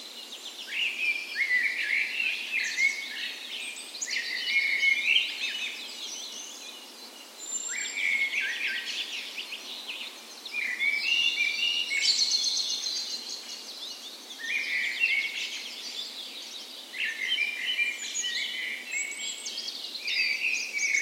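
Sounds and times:
birds in full dawn chorus: 0.0 - 21.0.

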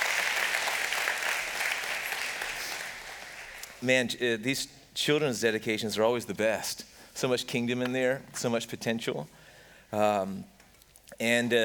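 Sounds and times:
audience applause: 0.0 - 3.8
speech: 3.8 - 10.5, 11.2 - 11.6.

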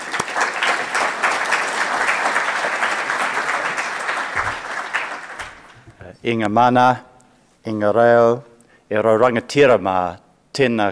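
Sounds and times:
audience applause: 0.0 - 5.8
speech: 6.2 - 10.8.

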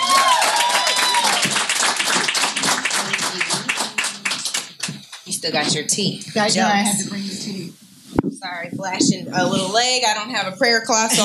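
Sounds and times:
whoops and cheers: 0.0 - 1.7
laughter: 0.0 - 4.9
crowd applauding: 0.0 - 5.7
speech: 5.4 - 7.8, 8.5 - 11.2.

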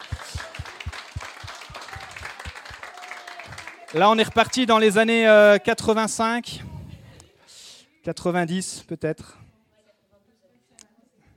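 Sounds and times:
crowd applauding: 0.0 - 5.2
speech: 3.9 - 6.7, 8.0 - 9.4.

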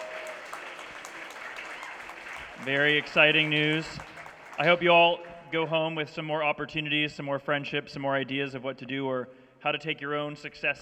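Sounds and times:
round of applause for speakers: 0.0 - 5.2
speech: 2.6 - 10.8.

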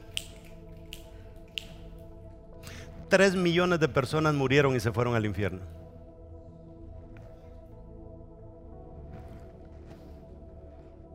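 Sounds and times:
crisp finger snaps: 0.0 - 2.8
speech: 3.1 - 5.8.

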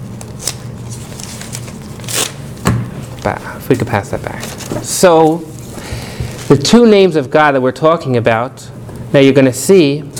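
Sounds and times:
paper ripped from a notebook into two pieces: 0.2 - 2.4
speech: 3.2 - 5.6, 6.5 - 10.1.

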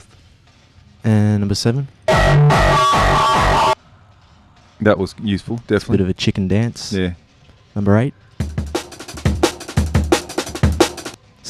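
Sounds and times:
speech: 1.0 - 3.7, 4.8 - 7.2, 7.8 - 8.4
breakbeat drum loop in tracker music: 2.1 - 3.8, 8.4 - 11.2.

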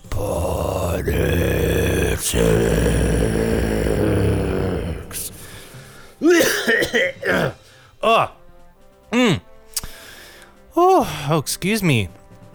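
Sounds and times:
coughing and throat clearing: 0.3 - 8.4, 9.1 - 9.4
speech: 1.0 - 1.6, 2.2 - 3.7, 11.4 - 12.2.

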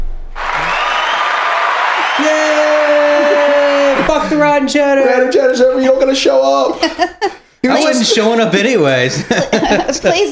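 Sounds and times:
audience clapping: 0.4 - 4.5
laughter: 1.9 - 4.5, 5.2 - 10.3
speech: 4.2 - 10.3.

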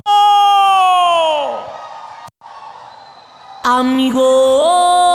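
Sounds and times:
Mexican grito shout: 0.0 - 1.7
speech: 3.7 - 5.0.

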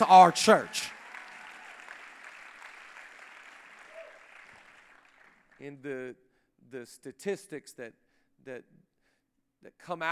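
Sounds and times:
speech: 0.0 - 0.9, 5.6 - 8.9, 9.6 - 10.1
audience clapping: 0.0 - 5.7.

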